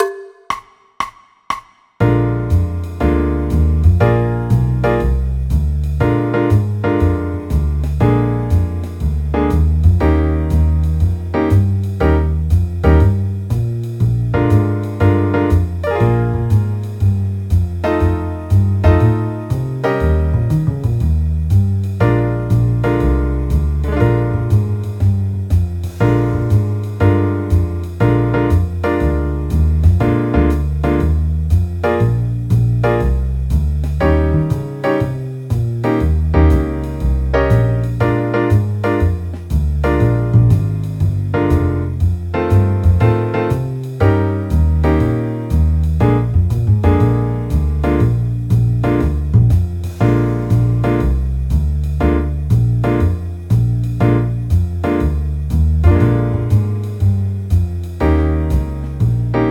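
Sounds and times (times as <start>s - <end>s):
blues music: 2.0s - 59.4s.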